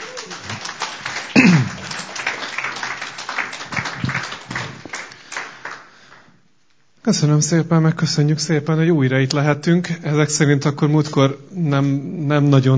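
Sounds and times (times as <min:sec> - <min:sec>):
audience applause: 0:00.0 - 0:06.3
speech: 0:07.1 - 0:12.7.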